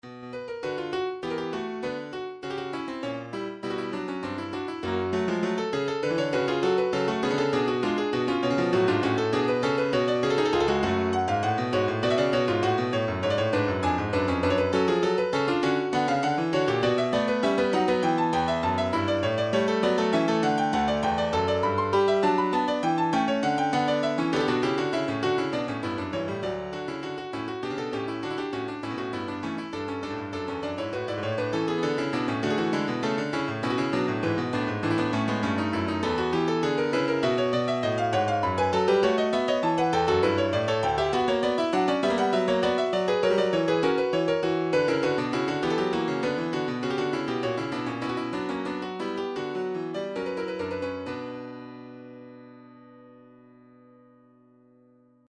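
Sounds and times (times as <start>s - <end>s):
MIDI piano: 0.0s - 55.2s.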